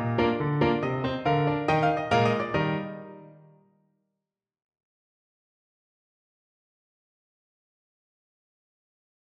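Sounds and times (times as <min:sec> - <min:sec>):
flute playing a klezmer bulgar tune: 0:00.2 - 0:03.5.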